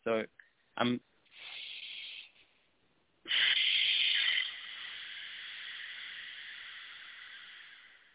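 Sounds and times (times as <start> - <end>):
speech: 0.0 - 1.1
forceful rasping exhale: 1.3 - 2.7, 3.3 - 8.1
breath sucked in through the throat: 1.3 - 8.1.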